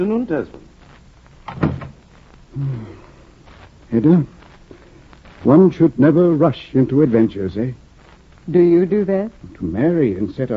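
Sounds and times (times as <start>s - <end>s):
speech: 0.0s - 0.7s, 2.6s - 3.1s, 3.9s - 4.4s, 5.4s - 7.8s, 8.5s - 10.5s
door closing as a judge leaves in a radio drama: 1.4s - 2.0s.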